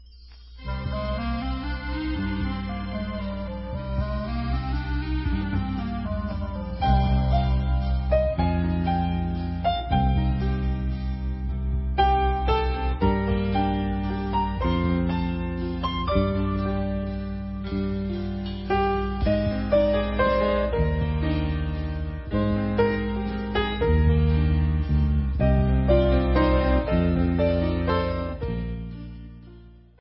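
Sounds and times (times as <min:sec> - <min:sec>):
instrumental music: 0:00.0 - 0:29.9.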